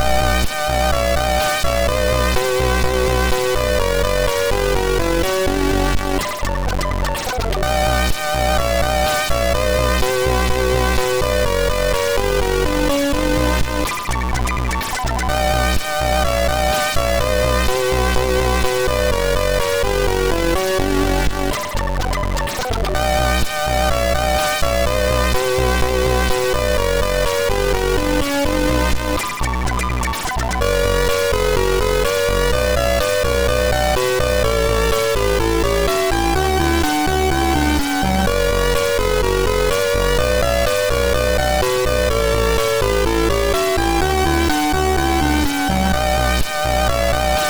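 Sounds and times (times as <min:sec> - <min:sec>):
MOS 6581R2 SID chip music: 0:00.0 - 0:47.4.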